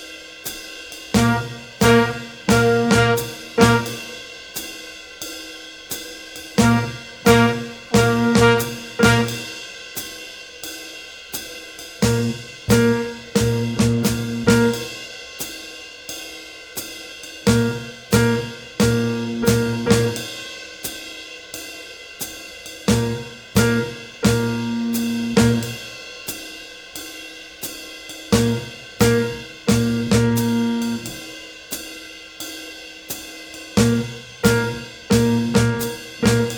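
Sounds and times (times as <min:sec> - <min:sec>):
swing rhythm workout music: 0:01.2 - 0:04.3, 0:06.6 - 0:09.6, 0:12.0 - 0:15.0, 0:17.5 - 0:20.4, 0:22.9 - 0:25.8, 0:28.3 - 0:31.2, 0:33.8 - 0:36.5.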